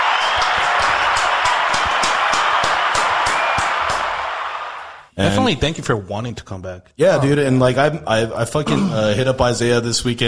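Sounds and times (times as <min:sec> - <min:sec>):
round of applause: 0:00.0 - 0:05.1
speech: 0:05.2 - 0:10.2.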